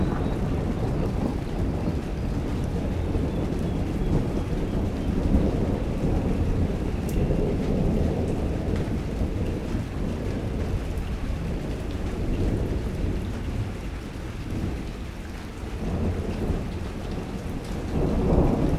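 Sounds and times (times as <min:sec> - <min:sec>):
rain in Vedia Buenas Aires Province Argentina: 0:00.0 - 0:18.7
thunder in Vedia Buenas Aires Province Argentina: 0:00.0 - 0:18.7.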